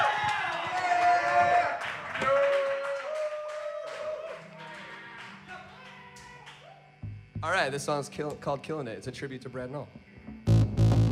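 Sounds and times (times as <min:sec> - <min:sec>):
live studio audience clapping and cheering for a band on a local music show: 0:00.0 - 0:06.9
lingering tones: 0:06.8 - 0:11.1
speech: 0:07.5 - 0:10.1.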